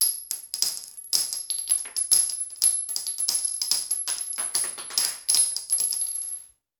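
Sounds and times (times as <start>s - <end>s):
bullet shell: 0.0s - 6.5s.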